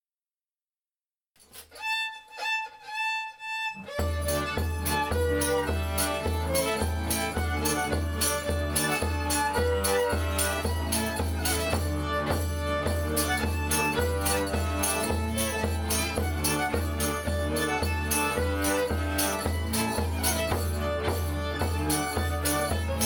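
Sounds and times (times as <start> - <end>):
polka music: 3.4 - 23.0.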